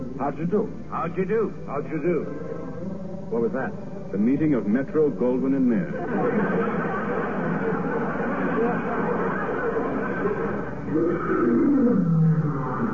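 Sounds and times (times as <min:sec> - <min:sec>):
speech: 0:00.2 - 0:02.5, 0:03.3 - 0:06.5
laughter: 0:05.8 - 0:12.9
lion roar: 0:10.9 - 0:12.9.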